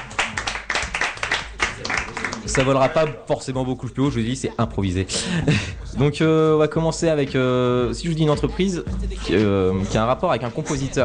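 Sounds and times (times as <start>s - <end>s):
people clapping hands: 0.0s - 3.3s
speech: 2.6s - 11.0s
laughter: 5.1s - 5.9s.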